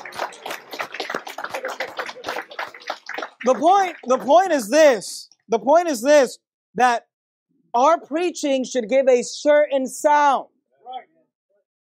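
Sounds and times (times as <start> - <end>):
audience applause: 0.0 - 5.0
speech: 3.4 - 7.1, 7.7 - 10.5.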